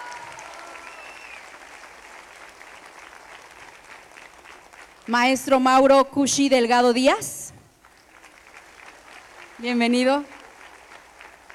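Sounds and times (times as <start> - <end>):
audience applause: 0.0 - 5.1, 7.8 - 11.5
speech: 5.0 - 7.4, 9.6 - 10.4.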